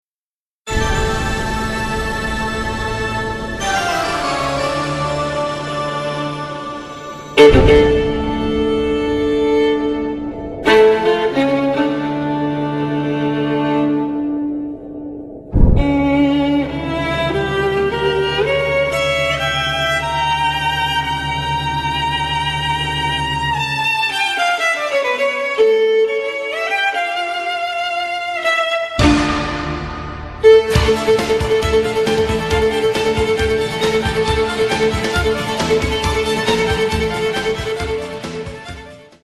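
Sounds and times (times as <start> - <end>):
classical violin: 0.7 - 14.7, 15.6 - 29.7, 30.3 - 39.2.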